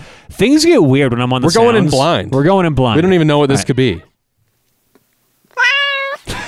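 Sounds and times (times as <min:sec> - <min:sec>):
speech: 0:00.3 - 0:04.1
fierce cat sound effect yowling meow: 0:05.6 - 0:06.3.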